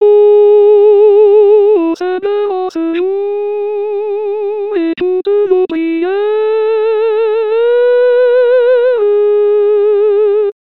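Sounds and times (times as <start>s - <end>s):
alto voice singing: 0.0s - 10.6s.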